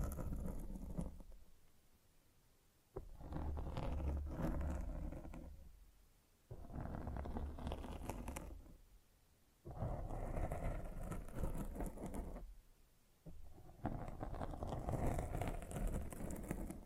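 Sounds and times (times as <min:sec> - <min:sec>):
microphone being scratched and rubbed: 0:00.0 - 0:01.3, 0:03.0 - 0:05.6, 0:06.5 - 0:08.8, 0:09.7 - 0:12.4, 0:13.6 - 0:16.8.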